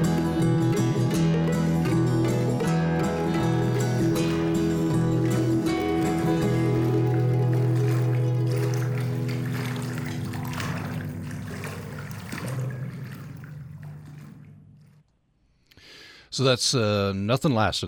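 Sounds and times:
sustained musical tones: 0.8 - 15.0
water sloshing and lapping: 1.8 - 15.6
speech: 16.4 - 17.8.

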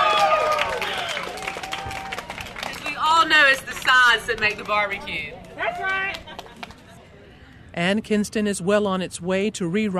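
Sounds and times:
crowd clapping and cheering: 0.0 - 6.9
speech: 3.5 - 6.2, 7.8 - 9.9.

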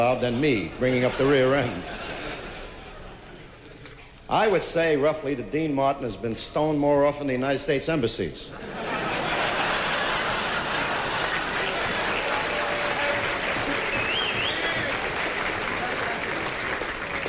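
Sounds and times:
speech: 0.0 - 2.1, 4.3 - 8.9
laughter: 0.0 - 3.9, 8.5 - 17.2
audience applause: 9.0 - 17.2
scattered whistles: 13.8 - 15.0.

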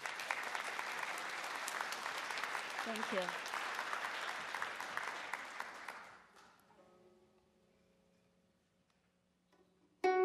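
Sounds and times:
audience applause: 0.0 - 6.3
speech: 2.8 - 3.5.

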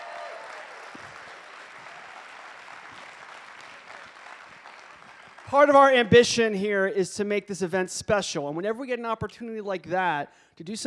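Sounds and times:
crowd applauding: 0.0 - 6.0
speech: 5.5 - 10.8.

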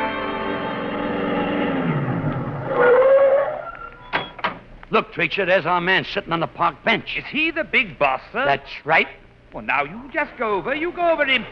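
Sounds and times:
stylized car engine pulling away: 0.1 - 2.8
speech: 5.1 - 11.4.

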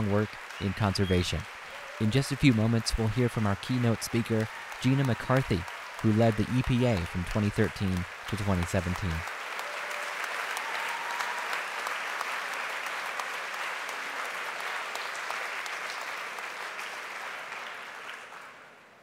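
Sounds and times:
speech: 0.0 - 9.3
audience applause: 0.0 - 19.0.

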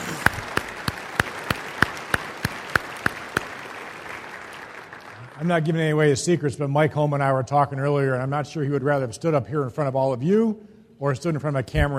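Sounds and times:
audience applause: 0.0 - 5.9
speech: 5.4 - 11.9.

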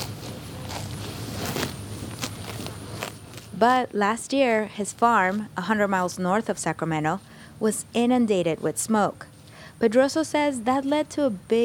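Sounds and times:
cows munching grass: 0.0 - 3.6
speech: 3.6 - 11.6.

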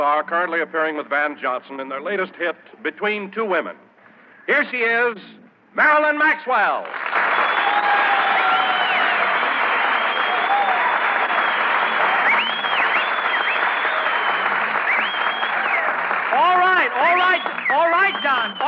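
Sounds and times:
speech: 0.0 - 3.9, 4.5 - 7.2
audience clapping: 6.8 - 18.6
faint whistles: 7.3 - 16.0, 17.1 - 18.6.

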